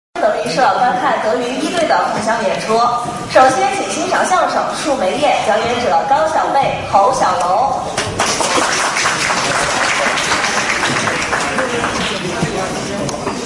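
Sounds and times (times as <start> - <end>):
speech: 0.2 - 8.8
audience applause: 8.0 - 13.3.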